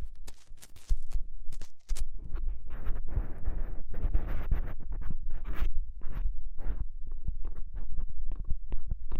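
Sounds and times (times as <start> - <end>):
scratching and rubbing against the microphone: 0.0 - 9.0.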